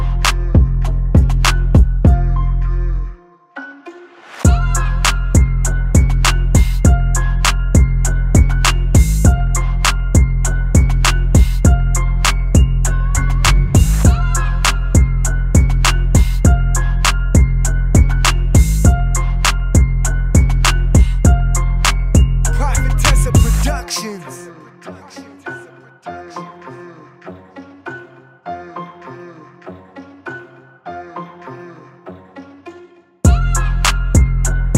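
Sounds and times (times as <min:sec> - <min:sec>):
aggressive fast dark trap rap beat instrumental: 0:00.0 - 0:02.9, 0:04.5 - 0:25.3, 0:33.3 - 0:34.7.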